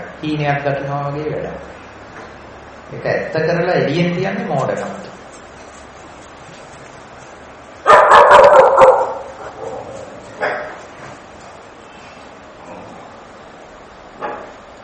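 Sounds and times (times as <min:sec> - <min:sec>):
speech: 0:00.2 - 0:01.8, 0:02.9 - 0:05.1
dogs barking outside: 0:07.8 - 0:11.2.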